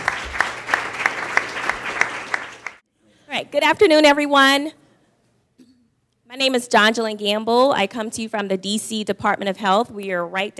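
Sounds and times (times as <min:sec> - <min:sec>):
audience applause: 0:00.0 - 0:02.8
speech: 0:03.4 - 0:04.8, 0:06.3 - 0:10.5.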